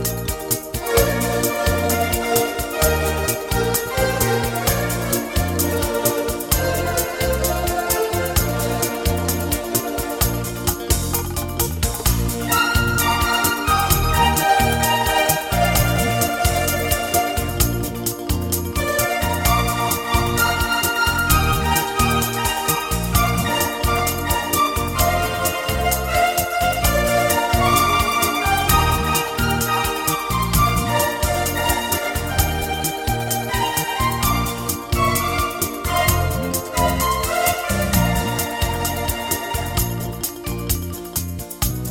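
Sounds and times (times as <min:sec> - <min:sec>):
modern bachata music: 0:00.0 - 0:41.8.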